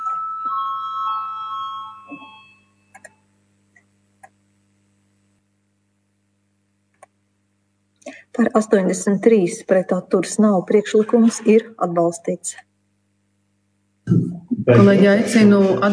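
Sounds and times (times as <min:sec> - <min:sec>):
parliament bell calling a vote: 0:00.0 - 0:03.0
speech: 0:08.4 - 0:12.7, 0:14.7 - 0:15.9.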